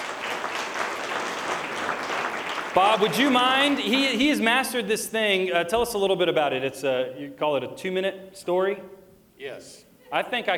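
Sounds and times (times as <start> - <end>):
audience applause: 0.0 - 4.4
speech: 2.8 - 10.5.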